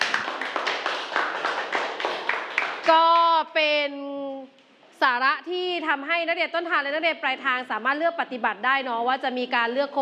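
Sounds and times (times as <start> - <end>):
applause for a student group: 0.0 - 3.3
speech: 2.9 - 10.0.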